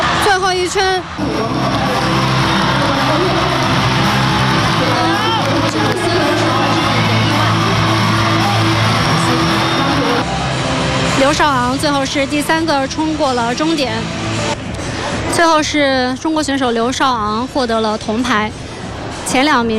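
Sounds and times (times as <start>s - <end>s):
crowd cheering for Chinese skaters at a short track speed skating race: 0.0s - 15.6s
speech: 0.7s - 1.8s, 11.3s - 14.2s, 15.4s - 18.6s, 19.3s - 19.7s.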